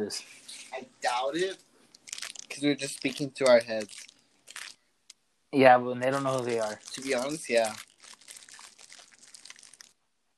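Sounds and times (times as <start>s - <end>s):
speech: 0.0s - 1.7s, 2.5s - 4.1s, 5.5s - 7.9s
fortune cookie wrapper crinkling: 1.4s - 4.9s, 6.1s - 10.0s
fortune cookie being eaten: 1.9s - 4.8s, 6.1s - 10.0s.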